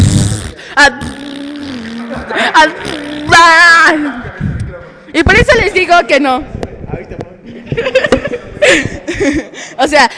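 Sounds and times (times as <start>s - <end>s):
voice imitating fart sounds into a microphone for a game: 0.0s - 3.9s
speech: 0.8s - 1.2s, 2.3s - 4.3s, 5.2s - 6.6s, 7.8s - 10.1s
laughter: 1.7s - 3.2s, 7.5s - 9.8s.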